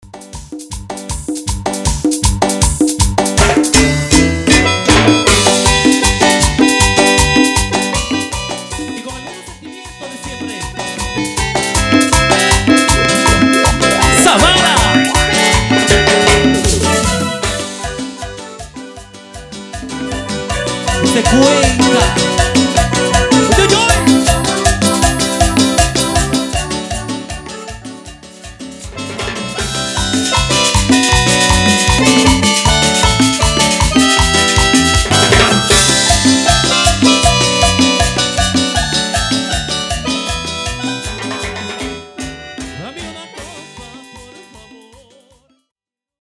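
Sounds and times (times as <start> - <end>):
simple music intro at 157 BPM: 0.2 - 45.5.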